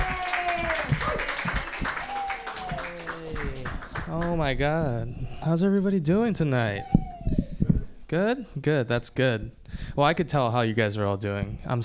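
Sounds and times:
audience clapping for a comedian at a comedy club night: 0.0s - 4.6s
speech: 4.4s - 7.0s, 8.1s - 11.8s.

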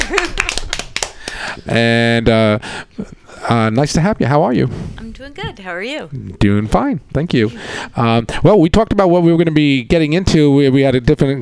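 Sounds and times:
audience applause: 0.0s - 1.5s
speech: 0.1s - 0.3s, 1.6s - 11.3s.

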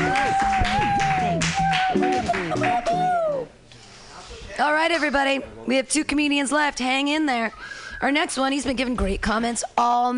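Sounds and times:
audience applause for comedian: 0.0s - 3.6s
speech: 4.8s - 10.1s.

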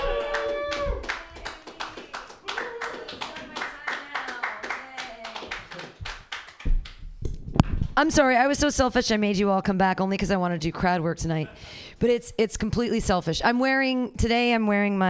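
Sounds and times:
people whooping and cheering: 0.0s - 1.2s, 2.4s - 3.4s
crowd clapping: 0.0s - 7.0s
speech: 8.0s - 15.0s.

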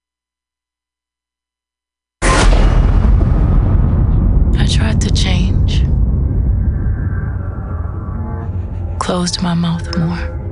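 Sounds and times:
thunder crack and rumble: 2.2s - 10.2s
speech: 9.2s - 10.4s.

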